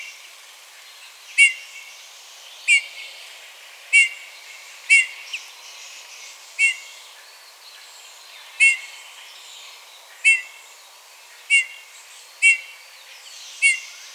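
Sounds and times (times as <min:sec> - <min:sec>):
Pyrrhula pyrrhula calling: 0:01.4 - 0:01.7, 0:03.9 - 0:04.2, 0:06.6 - 0:06.9, 0:08.6 - 0:08.8, 0:10.2 - 0:10.6, 0:11.5 - 0:11.9, 0:12.4 - 0:12.7, 0:13.6 - 0:13.9.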